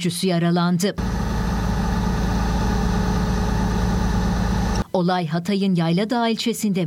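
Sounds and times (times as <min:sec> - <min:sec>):
speech: 0:00.0 - 0:01.2, 0:05.0 - 0:06.8
briquette-loaded truck engine idling on a ramp in Yayladağ, Hatay: 0:01.0 - 0:04.8.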